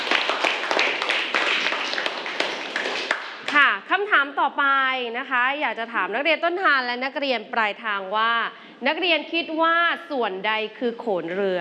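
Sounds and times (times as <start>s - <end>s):
classroom group clapping for a student: 0.0s - 3.7s
speech: 4.2s - 11.6s.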